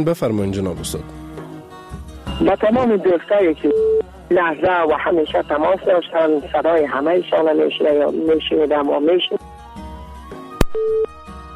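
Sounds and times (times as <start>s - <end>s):
speech: 0.0s - 1.2s, 2.4s - 9.5s
sustained tones: 0.5s - 9.4s
telephone busy tone after a radio caller's line drops: 2.8s - 4.0s, 10.6s - 11.2s.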